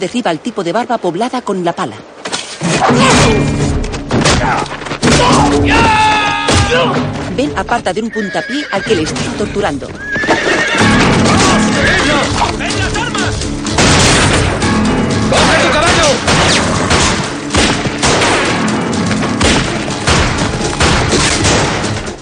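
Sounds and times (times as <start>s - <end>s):
speech: 0.0s - 2.2s, 2.8s - 3.8s, 4.4s - 6.1s, 6.7s - 10.3s
horses' hooves pounding as riders flee a canyon: 3.6s - 22.2s
horses whinnying: 8.0s - 12.4s
gunfire: 13.8s - 14.6s, 15.4s - 22.2s.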